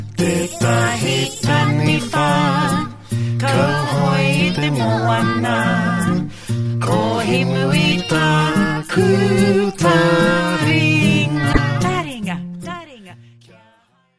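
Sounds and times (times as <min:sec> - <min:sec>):
Maori waiata song: 0:00.2 - 0:06.1, 0:07.0 - 0:12.2.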